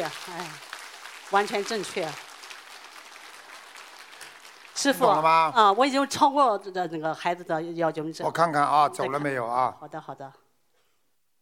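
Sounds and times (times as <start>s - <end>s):
speech: 0.0s - 0.7s, 1.3s - 2.3s, 4.8s - 10.4s
steady applause from a crowd: 0.0s - 5.7s.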